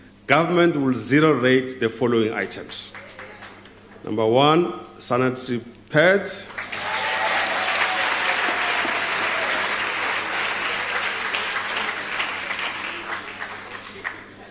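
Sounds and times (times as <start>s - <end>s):
speech: 0.3s - 3.0s, 4.0s - 6.7s
crowd applause: 6.5s - 14.5s.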